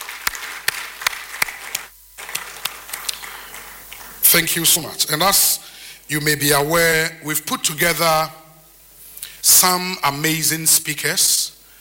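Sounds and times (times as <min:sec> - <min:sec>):
audience round of applause: 0:00.0 - 0:04.3
speech: 0:04.3 - 0:08.4, 0:09.4 - 0:11.4.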